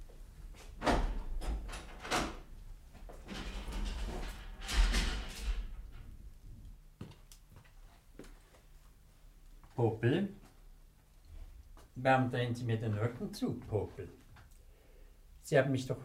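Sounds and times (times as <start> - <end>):
prison cell door being unlocked and opened, metallic clatter and scraping: 0.6 - 6.4
speech: 9.8 - 10.4, 12.0 - 14.2, 15.5 - 16.0.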